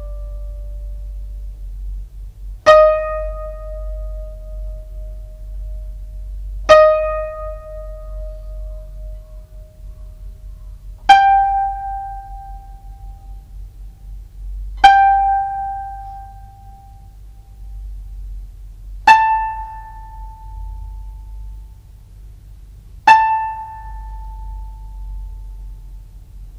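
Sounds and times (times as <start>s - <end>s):
koto being tuned: 0.0s - 1.2s, 2.7s - 6.1s, 6.7s - 10.4s, 11.0s - 13.4s, 14.8s - 17.2s, 19.0s - 21.6s, 23.1s - 25.8s.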